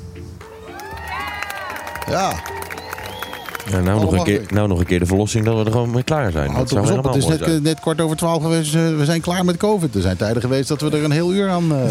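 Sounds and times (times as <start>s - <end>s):
applause sound effect: 0.7s - 6.8s
speech: 2.1s - 2.6s, 3.7s - 11.9s.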